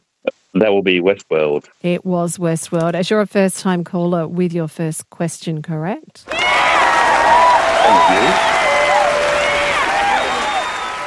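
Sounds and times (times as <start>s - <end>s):
speech: 0.6s - 6.4s, 7.9s - 8.6s
applause: 6.3s - 11.0s.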